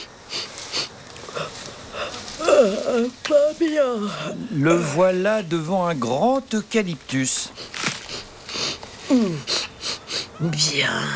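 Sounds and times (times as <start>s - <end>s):
koala sniffing: 0.0s - 3.2s, 7.5s - 10.4s
speech: 2.6s - 7.7s, 9.1s - 9.6s, 10.4s - 11.1s.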